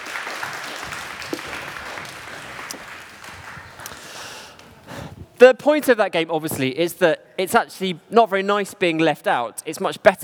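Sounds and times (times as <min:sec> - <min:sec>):
group applause: 0:00.0 - 0:05.4
speech: 0:05.4 - 0:10.2.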